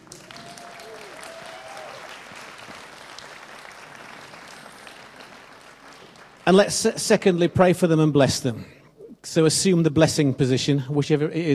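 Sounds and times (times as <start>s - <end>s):
congregation clapping: 0.0s - 6.7s
speech: 6.5s - 11.5s.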